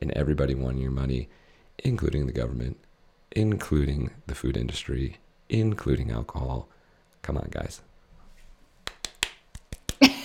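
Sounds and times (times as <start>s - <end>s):
speech: 0.2s - 7.9s
person slapping own face: 8.8s - 10.2s.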